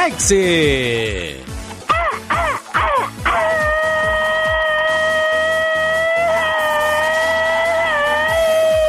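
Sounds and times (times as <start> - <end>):
speech: 0.0 - 1.6
machine-gun-like scream of staccato yelps and high-pitched wail: 1.8 - 8.8.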